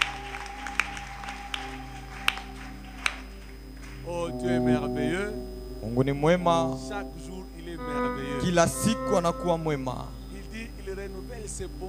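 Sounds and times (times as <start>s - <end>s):
church congregation clapping: 0.0s - 4.9s
sustained low droning tone: 2.4s - 11.8s
speech: 5.9s - 10.2s, 11.5s - 11.8s.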